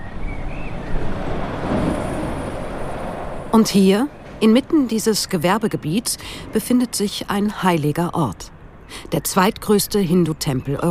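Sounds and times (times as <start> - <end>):
truck driving past on a road: 0.0 - 4.4
speech: 3.6 - 10.9.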